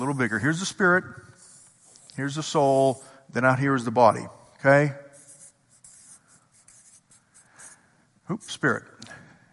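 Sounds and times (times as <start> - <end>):
speech: 0.0 - 1.3, 2.2 - 5.0, 8.3 - 8.9
pen or marker scratching while drawing circles by hand: 0.0 - 3.0, 5.1 - 8.7.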